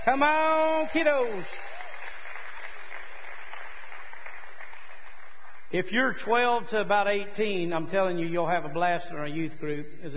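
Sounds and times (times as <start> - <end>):
speech: 0.0 - 1.7, 5.7 - 10.1
audience applause: 0.0 - 5.7.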